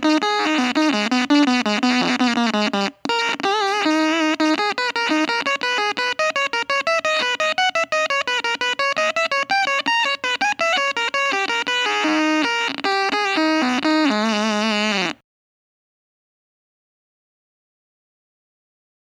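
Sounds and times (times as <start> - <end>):
classical guitar piece through a guitar processor: 0.0 - 15.2.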